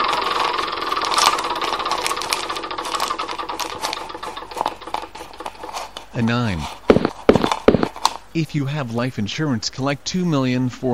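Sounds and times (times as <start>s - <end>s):
spinning wheel clicking in a video board game: 0.0s - 5.9s
speech: 6.2s - 6.8s, 8.4s - 10.9s.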